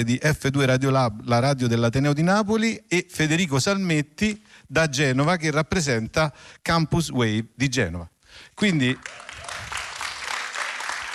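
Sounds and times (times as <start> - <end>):
speech: 0.0 - 9.2
audience applause: 8.9 - 11.1.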